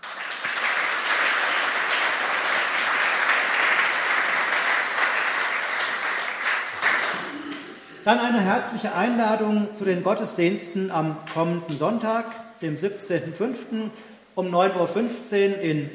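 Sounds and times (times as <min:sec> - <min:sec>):
crowd applauding: 0:00.0 - 0:07.9
speech: 0:08.0 - 0:15.9.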